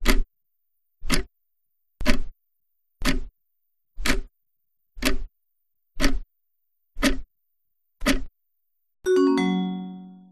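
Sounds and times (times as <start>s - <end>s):
clock: 0.0s - 0.3s, 1.0s - 1.3s, 2.0s - 2.3s, 3.0s - 3.3s, 4.0s - 4.3s, 5.0s - 5.3s, 6.0s - 6.3s, 7.0s - 7.3s, 8.0s - 8.3s.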